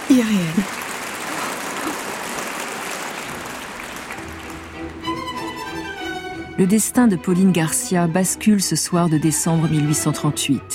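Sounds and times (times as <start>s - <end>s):
concert audience applauding: 0.0s - 6.4s
speech: 0.2s - 0.9s, 6.6s - 10.7s.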